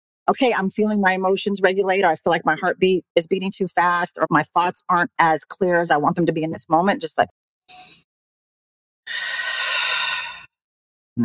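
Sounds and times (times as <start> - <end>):
speech: 0.3 - 8.0
intentional deep breath: 9.1 - 10.5.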